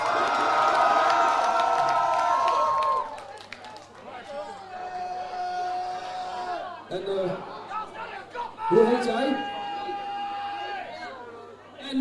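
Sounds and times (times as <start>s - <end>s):
audience applause: 0.0s - 4.7s
audience cheering: 0.0s - 6.8s, 7.8s - 11.2s
speech: 6.9s - 7.6s, 8.7s - 9.5s.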